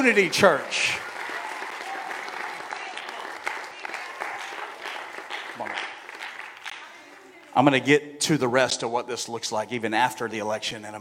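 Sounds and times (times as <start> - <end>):
speech: 0.0 - 1.0, 7.6 - 10.9
audience applause: 0.0 - 7.5.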